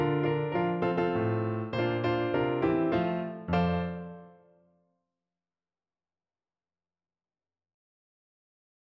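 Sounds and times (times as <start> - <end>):
piano: 0.0 - 4.7.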